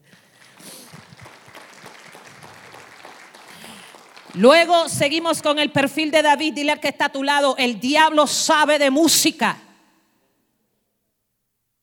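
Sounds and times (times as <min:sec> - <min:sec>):
audience applause: 0:00.0 - 0:04.8
speech: 0:04.4 - 0:09.7.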